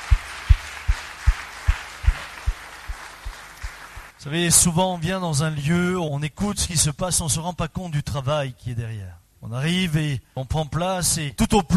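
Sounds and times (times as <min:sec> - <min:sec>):
audience applauding: 0:00.0 - 0:04.2
speech: 0:04.2 - 0:11.7.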